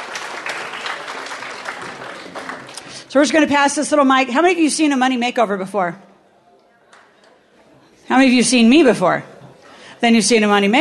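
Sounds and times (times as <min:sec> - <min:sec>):
audience applause greeting a volunteer brought on stage for a makeover: 0:00.0 - 0:03.1
speech: 0:03.1 - 0:06.1, 0:08.2 - 0:09.3, 0:10.0 - 0:10.7.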